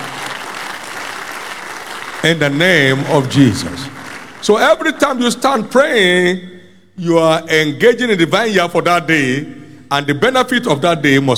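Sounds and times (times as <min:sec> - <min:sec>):
audience applause: 0:00.0 - 0:05.0
speech: 0:02.2 - 0:11.3.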